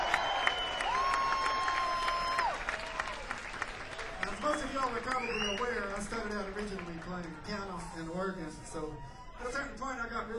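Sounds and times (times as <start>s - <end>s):
concert audience applause: 0.0s - 8.2s
speech: 4.9s - 10.3s.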